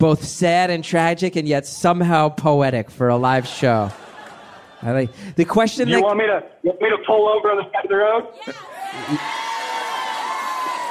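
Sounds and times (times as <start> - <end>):
speech: 0.0 - 4.0, 4.8 - 9.5
laughter: 3.2 - 6.0, 8.4 - 10.0
crowd cheering and whooping: 8.4 - 10.9.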